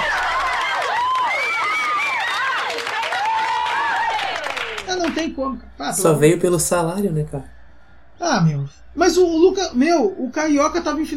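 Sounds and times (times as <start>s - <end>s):
applause: 0.0s - 5.2s
crowd cheering: 0.0s - 5.2s
speech: 5.2s - 7.6s, 8.2s - 11.1s.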